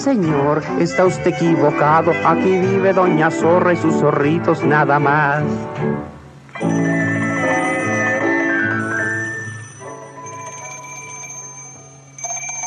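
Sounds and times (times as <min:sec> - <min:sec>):
speech: 0:00.0 - 0:07.2
telephone ringing: 0:06.5 - 0:12.6.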